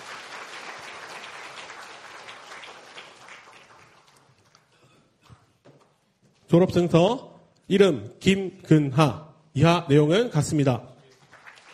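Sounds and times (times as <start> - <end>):
audience applause at a graduation ceremony: 0.0 - 4.8, 11.1 - 11.7
speech: 6.5 - 10.9.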